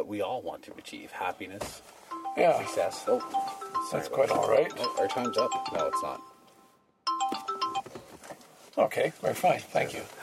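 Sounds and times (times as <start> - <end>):
speech: 0.0 - 6.3, 8.8 - 10.2
phone alarm going off: 2.1 - 7.9.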